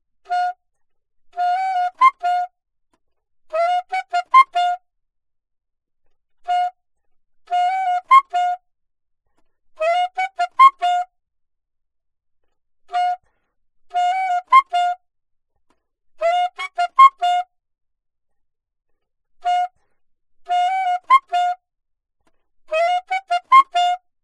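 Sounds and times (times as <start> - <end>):
alto saxophone: 0.2 - 0.6, 1.4 - 2.6, 3.5 - 4.9, 7.5 - 8.7, 9.8 - 11.2, 12.9 - 13.3, 13.9 - 15.0, 16.2 - 17.6, 19.4 - 21.6, 22.7 - 24.1.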